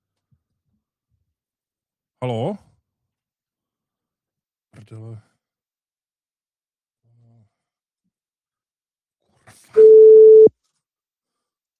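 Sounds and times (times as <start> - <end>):
speech: 2.2 - 2.7, 4.8 - 5.3
telephone busy tone after dropped call: 9.8 - 10.5.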